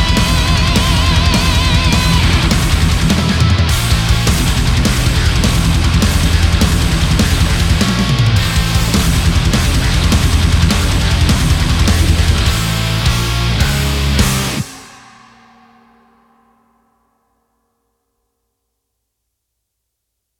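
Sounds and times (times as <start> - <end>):
high-gain guitar cabinets: 0.0 - 15.1.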